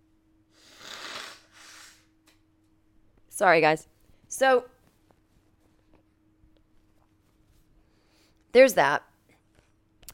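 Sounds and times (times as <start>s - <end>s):
person blowing nose: 0.5s - 2.1s
speech: 3.4s - 4.7s, 8.5s - 9.1s.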